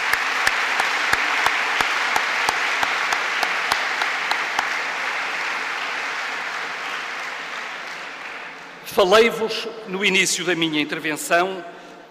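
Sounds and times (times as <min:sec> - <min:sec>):
audience applause: 0:00.0 - 0:08.9
speech: 0:09.0 - 0:12.0.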